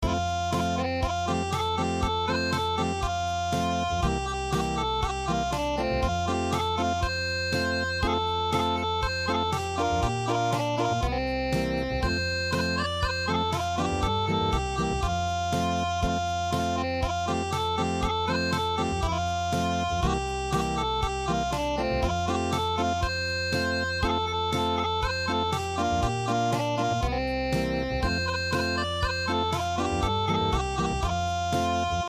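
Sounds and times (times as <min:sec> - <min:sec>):
unplugged music: 0:00.0 - 0:32.0.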